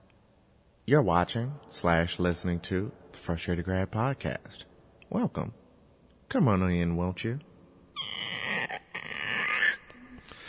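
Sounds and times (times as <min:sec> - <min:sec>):
speech: 0:00.9 - 0:05.6, 0:06.3 - 0:08.1
voice imitating a creaky door: 0:08.0 - 0:10.2.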